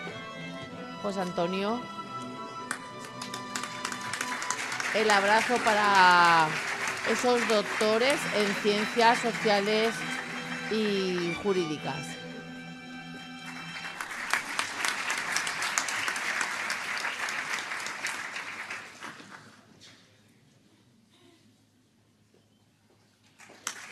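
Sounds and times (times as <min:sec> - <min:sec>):
speech: 0:01.0 - 0:02.0, 0:04.9 - 0:10.1, 0:10.7 - 0:12.2
audience applause at graduation ceremony: 0:02.7 - 0:11.8, 0:13.4 - 0:19.6, 0:23.4 - 0:23.9.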